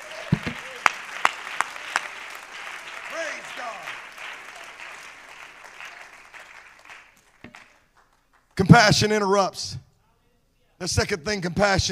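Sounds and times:
audience clapping hands: 0.0 - 8.7
speech: 8.6 - 9.8, 10.8 - 11.9.

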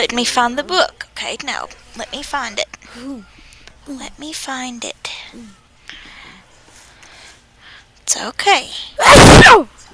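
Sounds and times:
speech: 0.0 - 5.6, 8.1 - 9.8
sneeze: 9.0 - 9.7.

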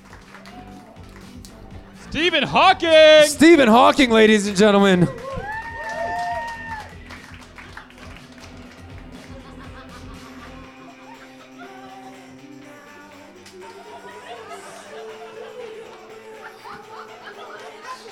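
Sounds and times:
audience applause: 0.0 - 1.3, 2.2 - 9.5
laughter: 1.7 - 5.3, 9.1 - 12.3, 13.7 - 18.1
speech: 2.1 - 5.2.

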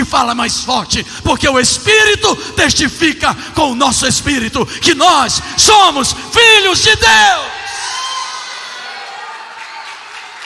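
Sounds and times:
speech: 0.2 - 7.6
audience applauding and cheering: 7.6 - 10.4.

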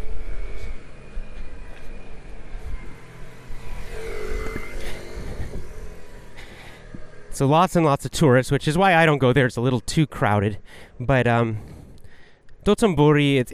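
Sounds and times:
motorcycle engine passing along a street: 0.0 - 9.8
steady traffic rumble: 0.0 - 13.5
speech: 7.4 - 11.8, 12.6 - 13.5.

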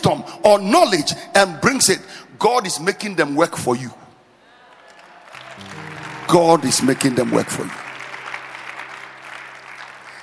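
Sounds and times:
speech: 0.0 - 4.1, 6.3 - 7.8
audience applauding: 4.6 - 10.2.

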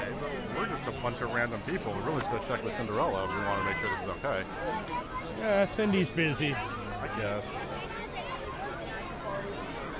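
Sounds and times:
crowd chatter: 0.0 - 9.9
speech: 0.8 - 7.9.

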